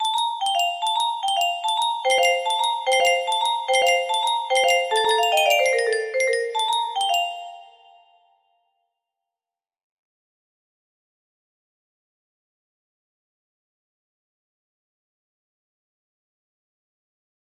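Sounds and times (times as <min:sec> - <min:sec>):
music box: 0:00.0 - 0:08.4.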